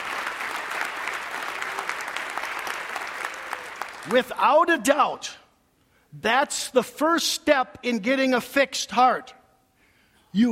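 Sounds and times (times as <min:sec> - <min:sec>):
audience applauding: 0:00.0 - 0:04.2
speech: 0:04.0 - 0:05.4, 0:06.1 - 0:09.4, 0:10.3 - 0:10.5.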